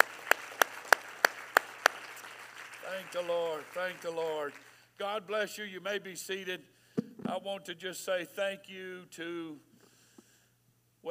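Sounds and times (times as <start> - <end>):
church congregation clapping hands in unison: 0.0 - 4.9
speech: 2.9 - 9.7.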